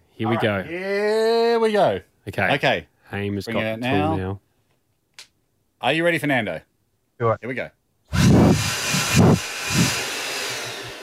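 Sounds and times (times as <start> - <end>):
speech: 0.2 - 4.4, 5.8 - 7.8
air blower gusts wafted onto the microphone: 8.1 - 11.0.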